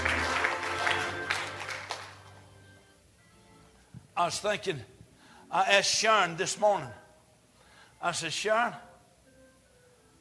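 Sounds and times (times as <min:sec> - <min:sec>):
audience clapping: 0:00.0 - 0:02.6
speech: 0:04.2 - 0:07.0, 0:08.0 - 0:08.9.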